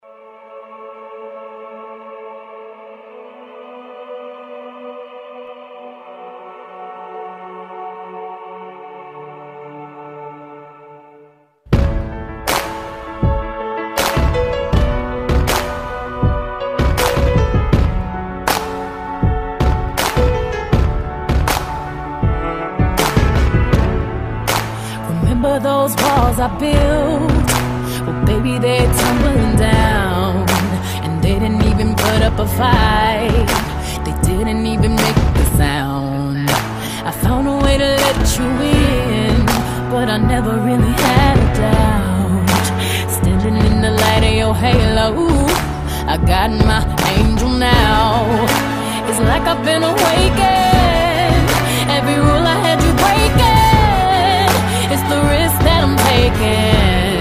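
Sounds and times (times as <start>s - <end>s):
ballroom rumba music: 11.7s - 35.6s, 36.5s - 57.1s.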